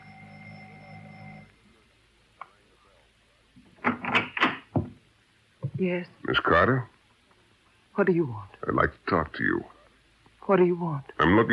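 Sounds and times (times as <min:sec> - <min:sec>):
doorbell ringing at a bungalow door: 0:00.0 - 0:01.5
speech: 0:05.8 - 0:07.0, 0:08.0 - 0:09.7, 0:10.5 - 0:11.5.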